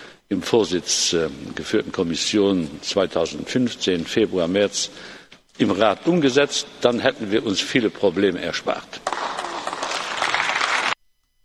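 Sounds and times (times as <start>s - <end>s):
speech: 0.3s - 9.1s
audience applause: 9.0s - 11.0s.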